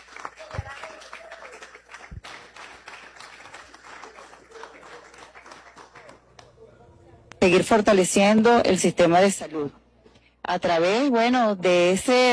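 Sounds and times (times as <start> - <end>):
applause: 0.0 - 6.6
speech: 7.4 - 9.8, 10.5 - 12.3.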